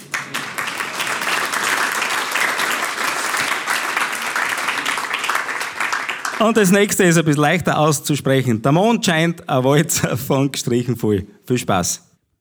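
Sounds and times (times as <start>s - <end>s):
audience applause: 0.0s - 7.0s
speech: 6.4s - 12.1s.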